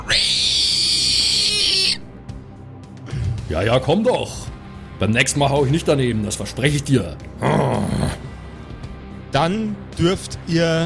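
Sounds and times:
creature's repulsive screech: 0:00.0 - 0:02.1
speech: 0:03.5 - 0:08.1, 0:09.4 - 0:10.8.

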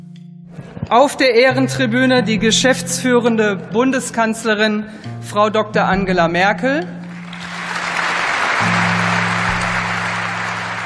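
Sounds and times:
speech: 0:00.8 - 0:07.0
long applause in the Bundestag for Angela Merkel: 0:07.0 - 0:10.8.

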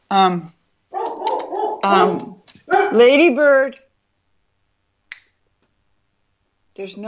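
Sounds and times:
speech: 0:00.1 - 0:00.6, 0:01.8 - 0:02.3, 0:02.9 - 0:03.8, 0:06.8 - 0:07.0
dog barking: 0:00.9 - 0:03.3.

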